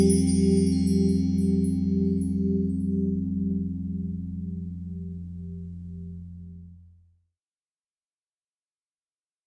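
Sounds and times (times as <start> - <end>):
fretless bass guitar finger picking with rear pickup through effects patch: 0.0 - 6.9.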